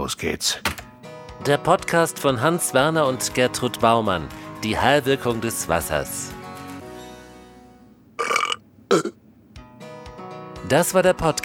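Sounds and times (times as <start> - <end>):
speech: 0.0 - 0.8, 1.4 - 6.4, 8.9 - 9.2, 10.6 - 11.4
person burping: 8.2 - 9.2.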